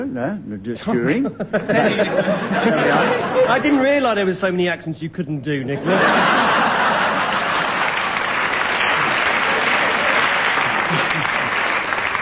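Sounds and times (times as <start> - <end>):
speech: 0.0 - 6.5
laughter: 1.0 - 3.8, 5.8 - 8.0, 8.8 - 12.0
audience applause: 6.4 - 12.2.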